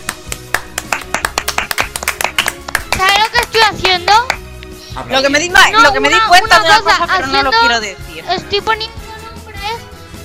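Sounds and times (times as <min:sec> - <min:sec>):
person clapping hands on cue: 0:00.0 - 0:04.7
speech: 0:05.0 - 0:09.0.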